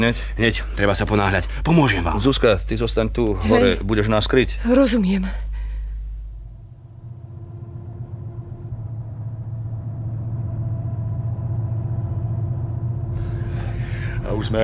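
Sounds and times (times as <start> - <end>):
speech: 0.0 - 5.4, 14.5 - 14.6
car engines growling: 6.5 - 14.6.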